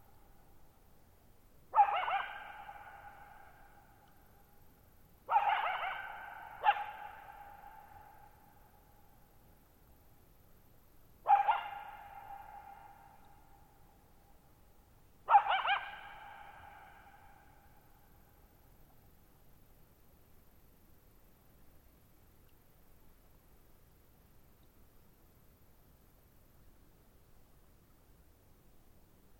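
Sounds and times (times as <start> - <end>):
coyote barking: 1.7 - 3.7, 5.3 - 8.2, 11.2 - 13.2, 15.2 - 17.4.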